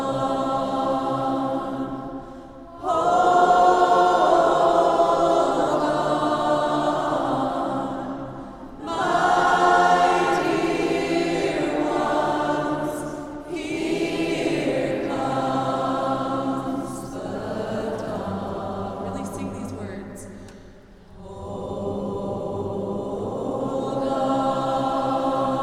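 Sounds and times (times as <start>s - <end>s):
people singing in a church: 0.0s - 25.6s.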